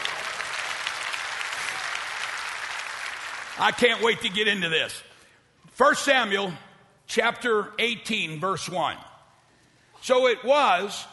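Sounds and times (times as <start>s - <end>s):
audience clapping: 0.0s - 4.6s
speech: 3.6s - 5.1s, 5.8s - 9.1s, 10.0s - 11.1s.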